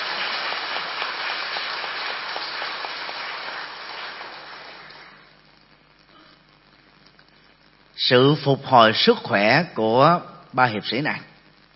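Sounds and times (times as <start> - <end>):
big round of applause: 0.0 - 5.3
speech: 8.0 - 11.3.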